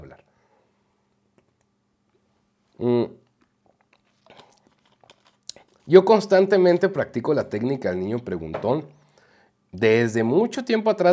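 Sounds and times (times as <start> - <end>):
person sipping liquid medicine: 2.8 - 5.9
speech: 5.9 - 9.0, 9.7 - 11.1.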